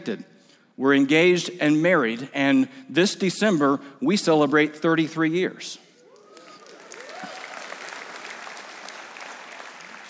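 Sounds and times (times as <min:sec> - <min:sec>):
speech: 0:00.0 - 0:05.8
audience clapping: 0:06.1 - 0:10.0.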